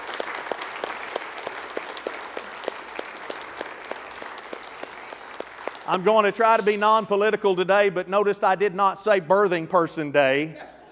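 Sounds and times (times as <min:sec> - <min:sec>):
audience applause: 0:00.0 - 0:06.7
speech: 0:05.9 - 0:10.7.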